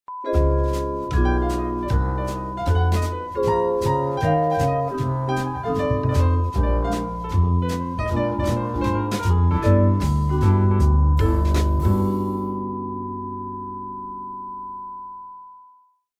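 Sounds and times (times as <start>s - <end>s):
groovy jingles: 0.4s - 12.2s.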